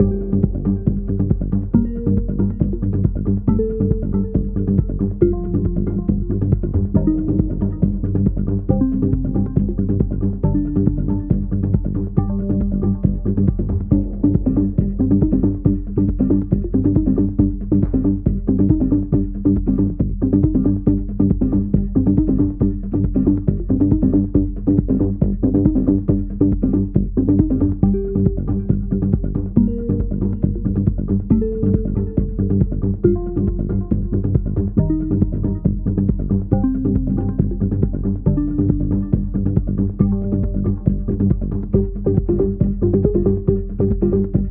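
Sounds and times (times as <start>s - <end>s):
filtered music loop: 0.0s - 44.4s.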